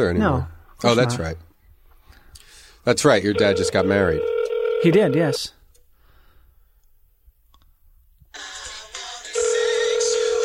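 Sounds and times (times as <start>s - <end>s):
speech: 0.0s - 1.5s, 2.8s - 5.6s
telephone ringing with a bright buzzy electronic tone: 3.3s - 5.4s, 9.4s - 10.4s.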